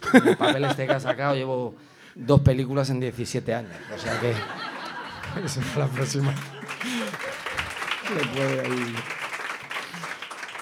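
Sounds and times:
voices talking and laughing: 0.0s - 1.6s, 3.6s - 8.8s
speech: 0.1s - 4.7s, 5.3s - 7.2s, 8.1s - 9.2s
audience applause: 4.0s - 10.6s.

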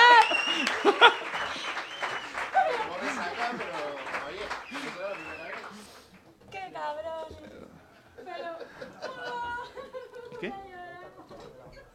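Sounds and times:
laughter: 0.0s - 5.6s, 8.2s - 11.9s
audience applause: 0.0s - 6.4s.

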